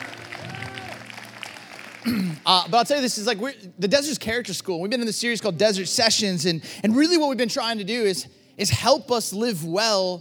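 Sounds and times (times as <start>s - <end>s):
audience clapping: 0.0s - 2.7s
person whooping: 0.4s - 1.1s
speech: 2.0s - 10.1s.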